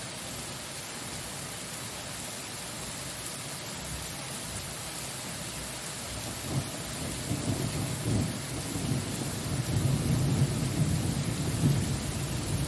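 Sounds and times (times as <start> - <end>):
steady thunderstorm rain hissing: 0.0 - 12.6
deep rolling thunder: 6.4 - 12.6.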